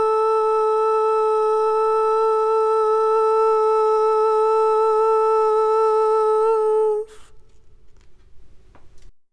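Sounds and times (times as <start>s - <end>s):
barbershop tags lead voice: 0.0s - 7.2s.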